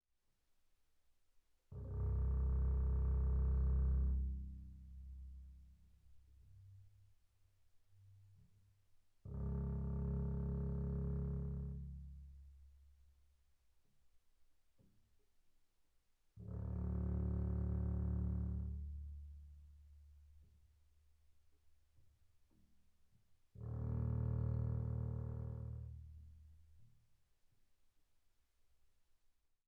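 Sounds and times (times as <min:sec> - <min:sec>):
double bass arco sul C pianissimo: 0:01.7 - 0:06.6, 0:09.3 - 0:12.7, 0:16.4 - 0:20.5, 0:23.6 - 0:26.3.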